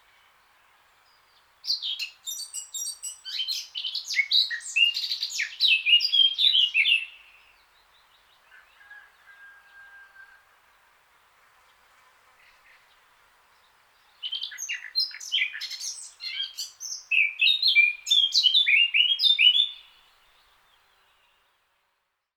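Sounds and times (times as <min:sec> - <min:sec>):
Eurasian blackcap Sylvia atricapilla singing warbled phrases: 0:01.6 - 0:07.3, 0:14.2 - 0:20.0.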